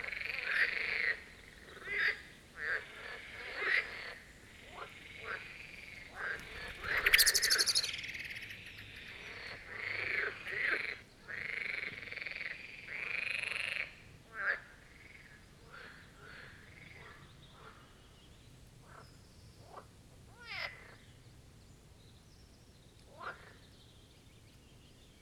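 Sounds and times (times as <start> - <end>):
marsh frog chorus of rattling croaks: 0.0 - 17.7
bird rapid chirping: 6.4 - 9.4.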